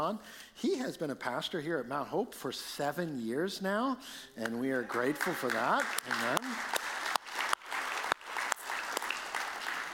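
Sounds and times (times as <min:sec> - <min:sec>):
speech: 0:00.0 - 0:06.8
audience applause: 0:04.8 - 0:09.9.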